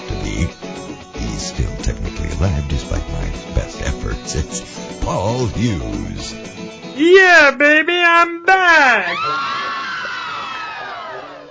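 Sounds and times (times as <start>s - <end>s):
speech: 0.4s - 0.6s, 1.4s - 9.6s
crowd cheering sound effect: 8.8s - 11.4s.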